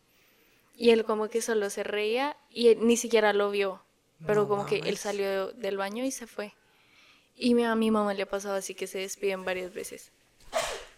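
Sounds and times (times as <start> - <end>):
speech: 0.8 - 6.6, 7.4 - 10.2
sneeze: 10.4 - 10.9.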